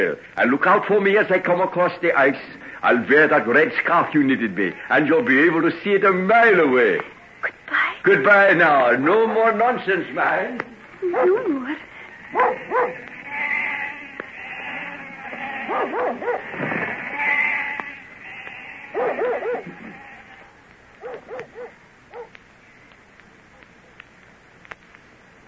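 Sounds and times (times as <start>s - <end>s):
speech: 0.0s - 7.2s, 8.0s - 13.1s
dog barking: 11.1s - 11.4s, 12.3s - 13.1s, 15.6s - 16.5s, 18.9s - 19.9s, 21.0s - 22.4s
flock of sheep bleating: 12.3s - 20.5s.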